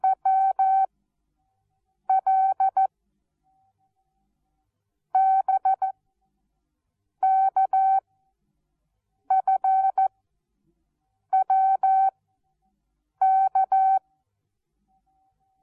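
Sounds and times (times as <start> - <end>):
morse code beeps: 0.0 - 0.9, 2.1 - 2.9, 5.2 - 5.9, 7.2 - 8.0, 9.3 - 10.1, 11.4 - 12.1, 13.2 - 14.0.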